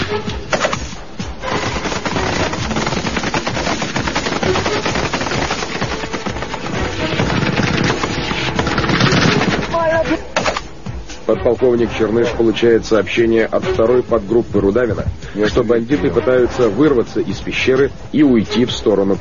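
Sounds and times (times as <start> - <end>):
heavy automatic gunfire: 0.6 - 10.6
speech: 11.4 - 19.1.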